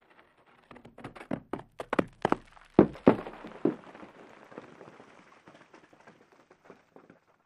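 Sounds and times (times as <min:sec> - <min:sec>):
single rock falling in an avalanche: 0:00.1 - 0:07.4.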